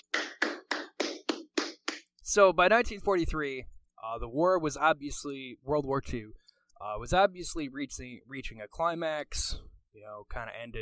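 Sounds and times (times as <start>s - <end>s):
single pair of hands clapping: 0.0s - 2.2s
speech: 2.3s - 10.8s.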